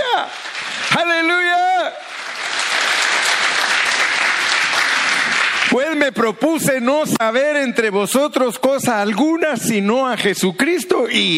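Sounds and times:
audience clapping: 0.0s - 6.8s
speech: 0.2s - 1.1s, 6.1s - 11.3s.

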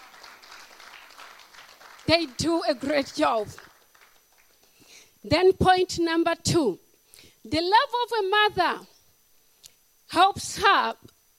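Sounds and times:
audience clapping: 0.0s - 4.8s
speech: 2.1s - 3.7s, 5.2s - 6.8s, 7.4s - 8.9s, 10.1s - 11.0s.

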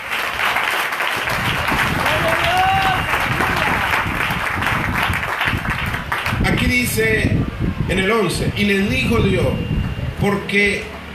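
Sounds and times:
loud applause: 0.0s - 7.0s
speech: 6.8s - 11.0s.

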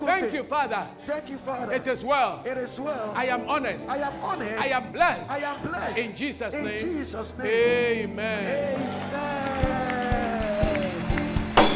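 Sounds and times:
crowd noise: 0.0s - 11.7s
speech: 0.2s - 9.5s
audience clapping in rhythm: 8.3s - 11.7s.

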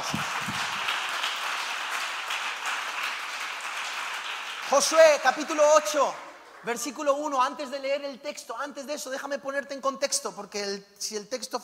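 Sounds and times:
audience applauding loudly: 0.0s - 7.3s
speech: 4.7s - 11.6s.

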